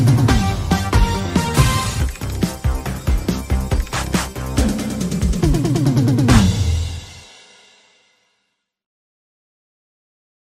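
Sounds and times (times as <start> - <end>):
instrumental music: 0.0 - 8.0.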